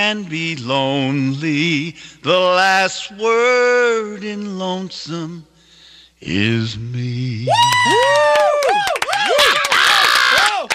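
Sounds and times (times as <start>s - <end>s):
speech: 0.0s - 5.5s, 6.2s - 9.6s
crowd cheering and yelling: 7.5s - 10.7s.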